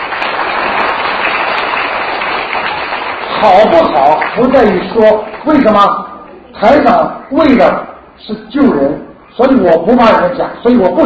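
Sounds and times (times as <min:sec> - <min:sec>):
audience applause: 0:00.0 - 0:05.4
speech: 0:03.4 - 0:06.0, 0:06.6 - 0:11.0.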